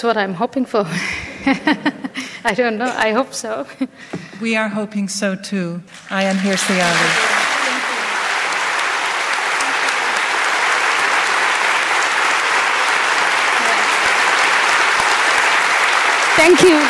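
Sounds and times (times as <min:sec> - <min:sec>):
speech: 0:00.0 - 0:07.4, 0:16.4 - 0:16.8
laughter: 0:00.9 - 0:02.4
large festival crowd clapping: 0:06.0 - 0:16.8.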